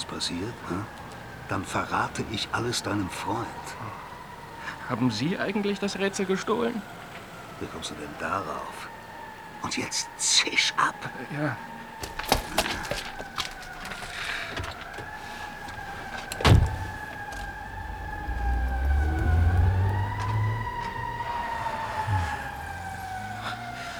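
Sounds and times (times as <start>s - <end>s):
speech: 0.1s - 4.1s, 4.9s - 7.0s, 7.6s - 8.9s, 9.6s - 12.3s
car driving away: 13.8s - 23.9s.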